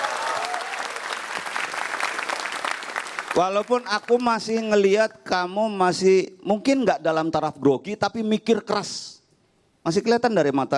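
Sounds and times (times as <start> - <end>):
applause for a participant: 0.0 - 4.4
speech: 3.4 - 9.2, 9.8 - 10.7.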